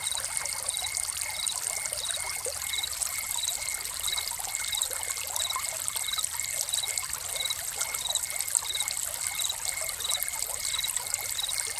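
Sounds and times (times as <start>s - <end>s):
cricket chirping: 0.0s - 11.7s
fountain water trickling and splashing: 0.0s - 11.7s.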